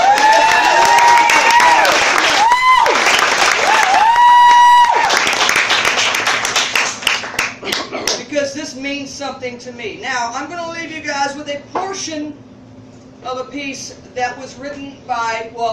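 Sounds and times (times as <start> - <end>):
audience round of applause: 0.0 - 7.6
speech: 9.4 - 12.5, 13.2 - 15.7.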